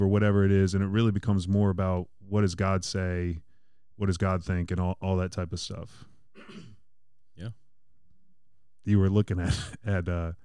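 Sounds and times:
speech: 0:00.0 - 0:06.7, 0:07.4 - 0:07.6, 0:08.8 - 0:10.4
coughing: 0:06.3 - 0:06.9.

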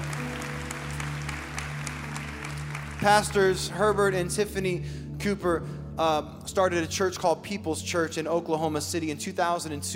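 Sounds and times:
church audience clapping: 0:00.0 - 0:03.8
speech: 0:03.0 - 0:09.9.

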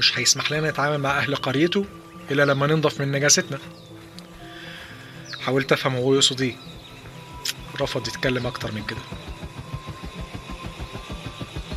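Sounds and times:
speech: 0:00.0 - 0:03.9, 0:05.5 - 0:06.7, 0:07.8 - 0:09.2
airplane engines roaring at takeoff: 0:04.0 - 0:11.7.

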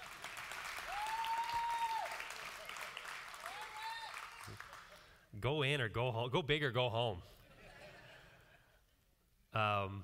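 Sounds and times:
half-hearted audience clapping: 0:00.0 - 0:05.2
speech: 0:05.4 - 0:07.4, 0:09.6 - 0:10.0
laughter: 0:07.4 - 0:08.9.

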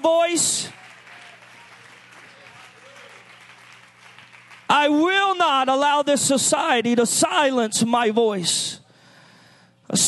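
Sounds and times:
speech: 0:00.0 - 0:00.8, 0:04.7 - 0:08.8
audience clapping hands: 0:00.0 - 0:05.3.

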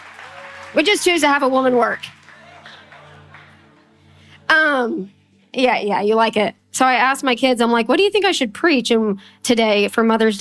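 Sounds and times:
audience applause: 0:00.0 - 0:04.0
speech: 0:00.7 - 0:02.2, 0:04.8 - 0:10.3.

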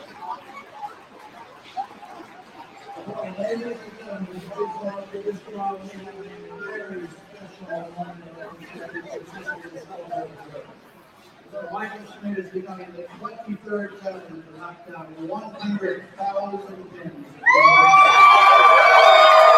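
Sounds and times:
crowd murmuring and chattering: 0:00.0 - 0:19.5
crowd cheering and high-pitched shouting: 0:17.4 - 0:19.5.

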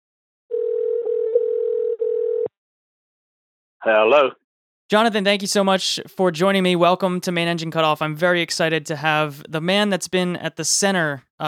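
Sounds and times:
telephone dial tone of an outgoing call: 0:00.5 - 0:02.5
speech: 0:03.8 - 0:11.4.

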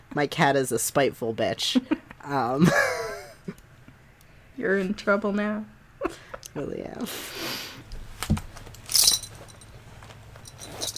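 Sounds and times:
speech: 0:00.2 - 0:03.0, 0:04.6 - 0:07.6
belt buckle jangling: 0:08.7 - 0:09.8, 0:10.4 - 0:10.9.

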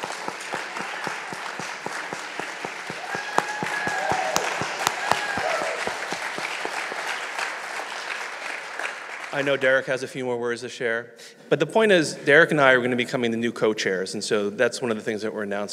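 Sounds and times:
people clapping: 0:00.0 - 0:09.8
speech: 0:09.4 - 0:15.7.

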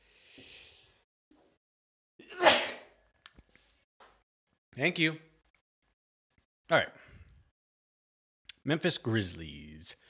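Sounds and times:
person sneezing: 0:02.2 - 0:03.0
speech: 0:04.8 - 0:05.3, 0:06.7 - 0:07.0, 0:08.7 - 0:10.0.

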